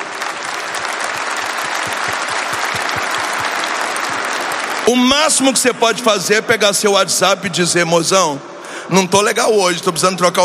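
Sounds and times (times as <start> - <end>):
crowd applauding: 0.0 - 6.0
speech: 4.9 - 10.4.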